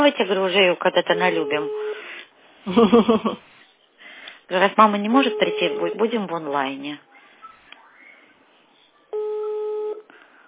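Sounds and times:
speech: 0.0 - 1.9, 2.6 - 3.5, 4.5 - 7.1
unanswered telephone ringback tone: 1.2 - 2.1, 5.1 - 6.1, 9.2 - 10.0.

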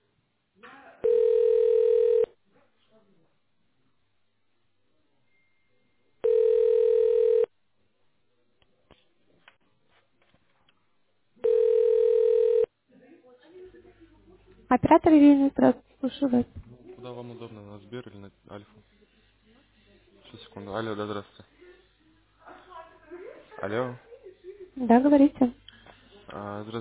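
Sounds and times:
telephone ringback tone while a call is transferred: 1.0 - 2.3, 6.2 - 7.5, 11.4 - 12.7
speech: 14.8 - 16.7, 17.4 - 19.0, 20.3 - 21.5, 23.6 - 24.1, 24.8 - 25.6, 26.3 - 26.7.

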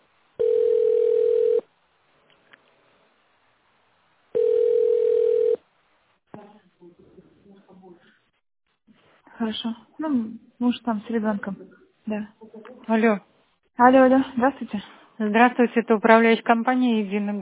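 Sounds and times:
telephone ringback tone over a telephone line: 0.4 - 1.7, 4.4 - 5.6
speech: 9.4 - 17.4.

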